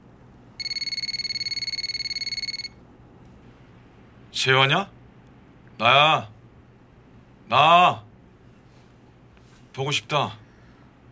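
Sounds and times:
telephone ringing with electronic warble: 0.6s - 2.8s
speech: 4.4s - 5.0s, 5.8s - 6.3s, 7.5s - 8.1s, 9.8s - 10.4s.

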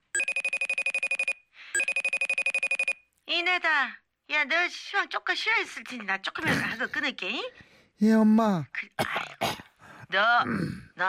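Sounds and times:
phone ringtone ringing: 0.0s - 3.1s
speech: 3.4s - 9.3s, 10.1s - 11.0s.

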